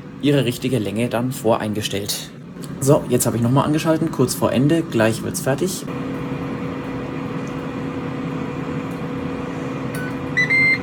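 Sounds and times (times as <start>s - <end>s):
air fryer fan whirring: 0.0s - 10.8s
speech: 0.2s - 6.3s
air fryer timer electronic beeps: 10.0s - 10.8s.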